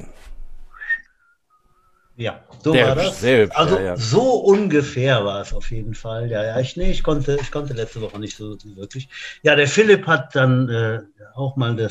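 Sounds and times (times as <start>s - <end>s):
whistled imitation of bird calls: 0.7s - 2.1s
speech: 2.2s - 11.8s.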